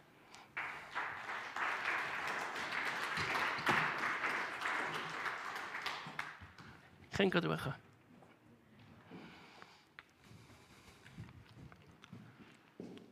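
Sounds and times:
audience applauding: 0.5 - 6.9
speech: 7.2 - 7.8.

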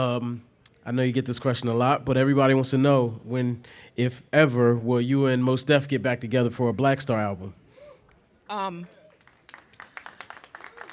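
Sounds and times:
speech: 0.0 - 7.6, 8.5 - 9.0
audience applause: 9.0 - 10.9.

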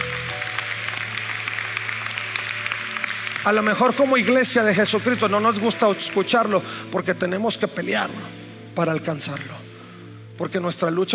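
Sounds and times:
audience applauding: 0.0 - 6.6
speech: 3.4 - 9.7, 10.4 - 11.1.

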